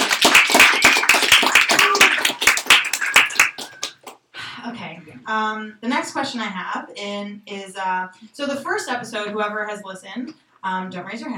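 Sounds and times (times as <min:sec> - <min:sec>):
round of applause from a group: 0:00.0 - 0:04.2
speech: 0:05.3 - 0:11.3.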